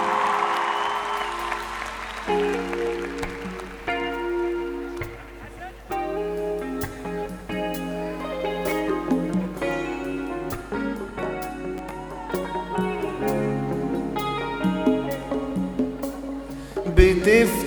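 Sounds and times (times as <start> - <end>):
audience applause: 0.0 - 5.7
instrumental music with stepping notes: 0.0 - 17.6.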